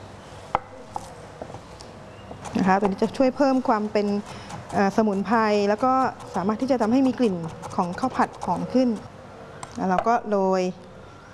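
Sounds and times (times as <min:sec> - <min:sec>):
knife finely slicing rolled kaffir lime and culantro leaves: 0:02.4 - 0:09.0
speech: 0:02.6 - 0:09.1, 0:09.8 - 0:10.8.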